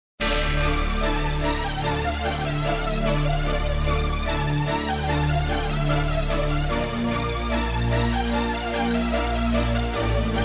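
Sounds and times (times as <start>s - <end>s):
hip hop music: 0.2s - 10.4s.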